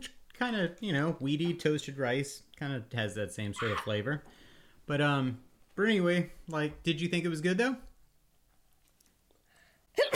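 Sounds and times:
speech: 0:00.4 - 0:07.9
woman sneezing: 0:03.6 - 0:03.8, 0:10.0 - 0:10.1.

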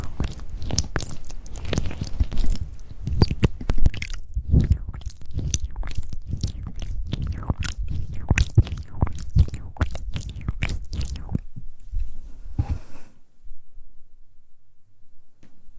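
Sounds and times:
tingly mouth sounds: 0:00.0 - 0:11.6.

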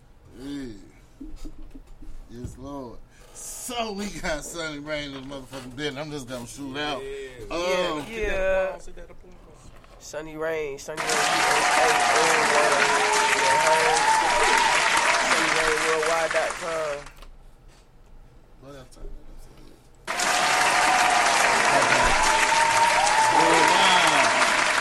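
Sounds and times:
speech: 0:02.4 - 0:03.1, 0:03.7 - 0:09.2, 0:10.0 - 0:14.8, 0:15.9 - 0:17.2
applause: 0:11.0 - 0:17.2, 0:20.1 - 0:24.7.

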